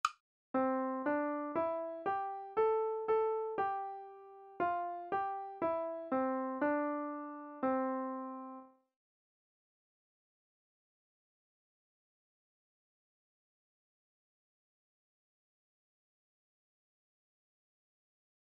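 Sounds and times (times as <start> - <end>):
melodic music: 0.6 - 8.7.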